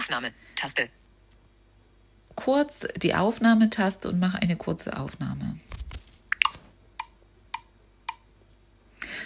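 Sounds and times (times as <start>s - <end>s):
speech: 0.1s - 1.0s, 2.4s - 6.0s
metronome count-in clicks before recording: 6.4s - 8.2s.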